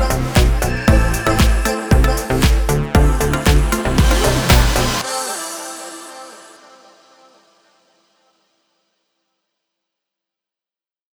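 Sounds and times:
electronic house techno music: 0.0s - 7.0s.

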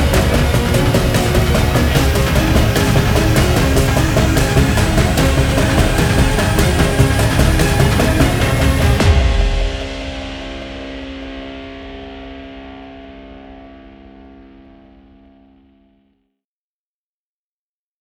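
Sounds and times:
violin: 0.0s - 9.4s
tense guitar: 0.0s - 15.6s.

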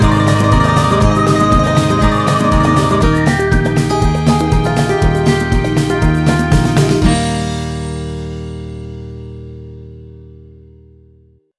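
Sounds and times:
whistling: 0.0s - 7.0s.

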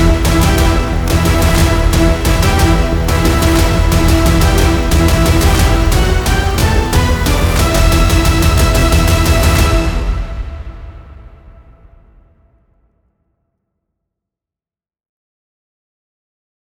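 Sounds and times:
tension violin pad: 0.0s - 11.6s.

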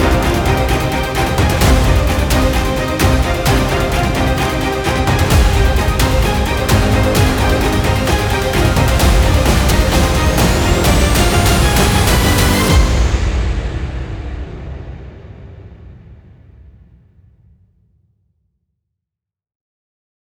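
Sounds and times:
tension music: 0.0s - 15.9s.

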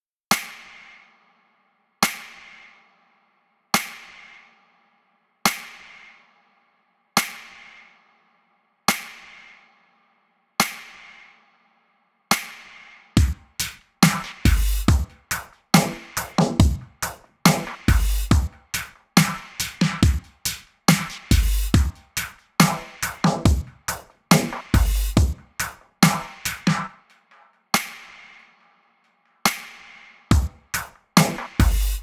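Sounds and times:
drum composition: 2.0s - 2.6s, 3.8s - 4.4s, 5.5s - 6.1s, 7.2s - 7.8s, 8.9s - 9.5s, 10.6s - 11.3s, 12.3s - 28.6s, 29.4s - 32.0s.

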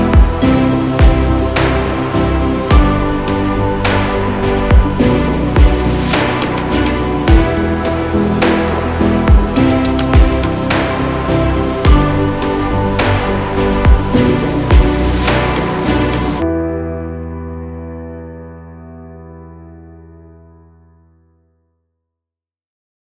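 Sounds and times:
tense horror thriller music: 0.0s - 16.4s.

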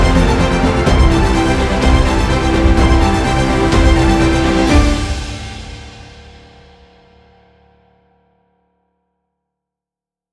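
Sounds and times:
tense horror thriller music: 0.0s - 6.6s.

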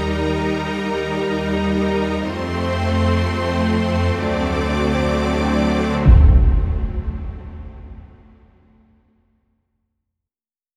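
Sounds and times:
dramatic violin: 0.0s - 8.3s.

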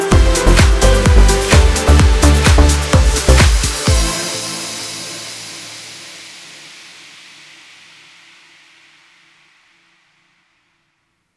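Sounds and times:
electronic house techno music: 0.0s - 6.6s.

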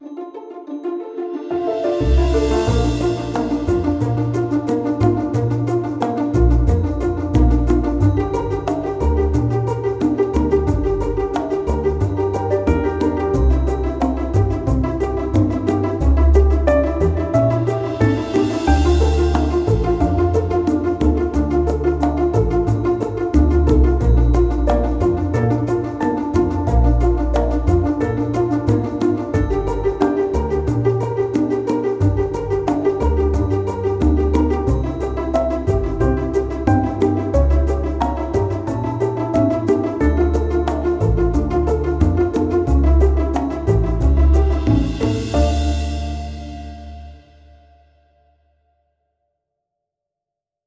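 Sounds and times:
cheerful entertainment pizzicato strings: 0.0s - 47.6s.

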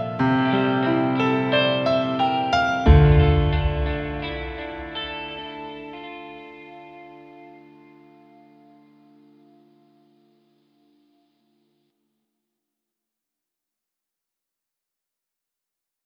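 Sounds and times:
dramatic guitar music: 0.0s - 11.1s.

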